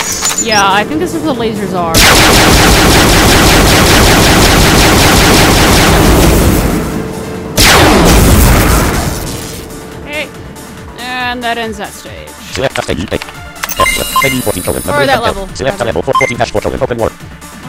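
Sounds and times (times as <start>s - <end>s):
other video game sounds: 0.0s - 17.6s
speech: 0.4s - 4.3s, 11.3s - 13.3s, 14.2s - 17.4s
video game machine gun fire: 2.0s - 6.8s, 7.6s - 9.6s.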